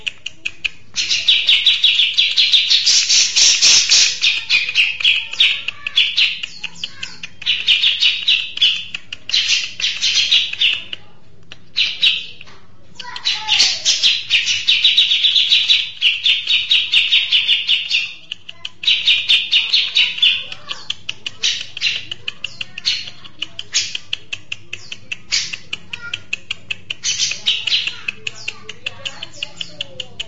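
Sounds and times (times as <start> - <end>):
mixed birdsong with quick high chirps and twitters: 0.4 - 11.0, 11.7 - 30.2.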